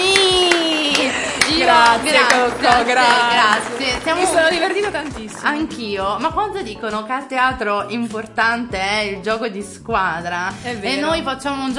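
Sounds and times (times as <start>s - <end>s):
audience applause: 0.0s - 6.0s
speech: 1.7s - 11.7s.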